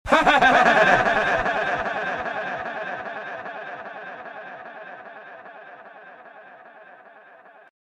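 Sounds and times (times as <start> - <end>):
cat laughing: 0.1 - 3.5.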